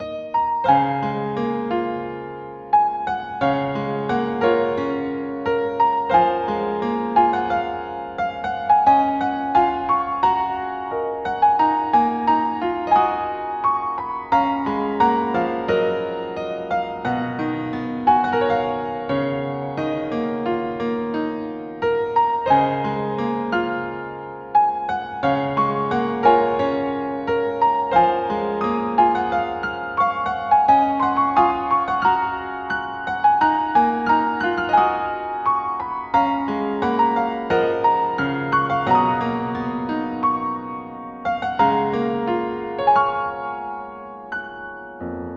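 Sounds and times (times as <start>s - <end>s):
piano: 0.0s - 45.3s.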